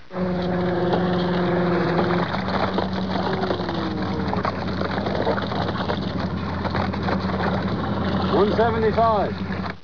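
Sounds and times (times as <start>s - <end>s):
noise: 0.0s - 9.8s.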